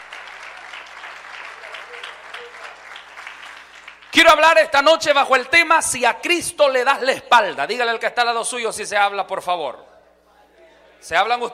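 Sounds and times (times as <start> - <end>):
audience applause: 0.0 - 4.2
speech: 4.2 - 9.9, 11.0 - 11.5.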